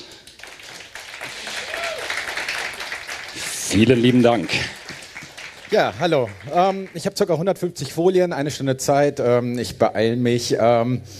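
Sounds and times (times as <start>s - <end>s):
audience applause: 0.0s - 7.7s
person cheering: 1.4s - 2.2s
speech: 3.7s - 4.8s, 5.7s - 11.1s.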